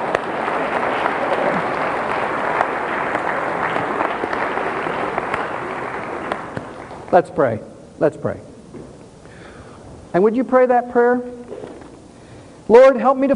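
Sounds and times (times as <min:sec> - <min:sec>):
audience applauding: 0:00.0 - 0:07.2
speech: 0:07.1 - 0:08.5, 0:10.1 - 0:11.4, 0:12.7 - 0:13.3.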